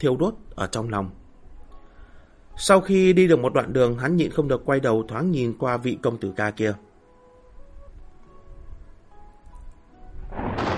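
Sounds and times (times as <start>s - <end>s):
speech: 0.0s - 1.2s, 2.6s - 6.8s
thunder clap: 10.2s - 10.7s.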